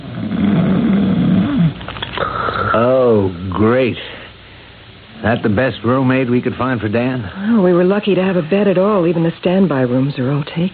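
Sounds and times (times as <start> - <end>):
big heavily muscled early middle-aged man snoring in a hospital bed in traction: 0.0 - 3.1
speech: 3.2 - 4.1, 5.2 - 10.7.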